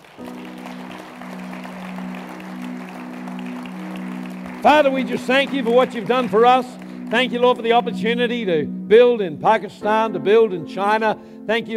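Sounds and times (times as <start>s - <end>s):
audience clapping: 0.0s - 8.3s
speech: 4.6s - 11.7s.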